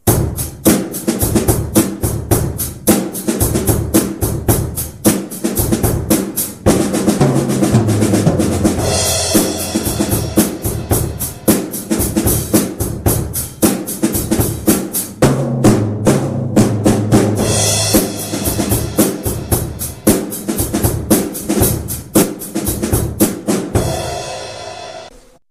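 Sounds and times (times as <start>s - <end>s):
drums: 0.0s - 25.4s.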